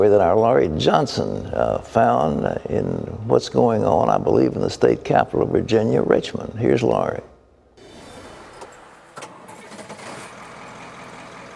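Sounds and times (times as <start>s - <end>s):
speech: 0.0s - 7.3s
truck engine of a mobile farmer's market starting and rumbling: 7.8s - 11.5s.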